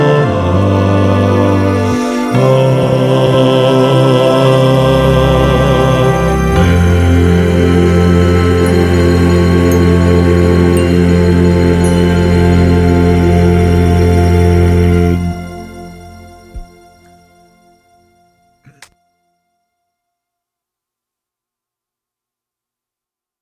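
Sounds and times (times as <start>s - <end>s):
bass voices of a choir singing: 0.0s - 17.6s.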